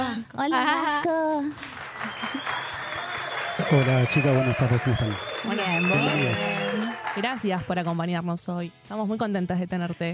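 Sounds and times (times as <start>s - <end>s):
speech: 0.2s - 2.8s, 3.7s - 10.1s
people clapping: 0.6s - 8.1s
faint high whistle-like tone: 2.0s - 6.9s.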